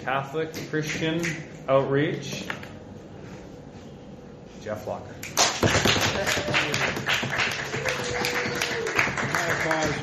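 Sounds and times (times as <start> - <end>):
speech: 0.0 - 2.7, 4.6 - 5.4, 6.2 - 7.4
applause: 5.3 - 10.0.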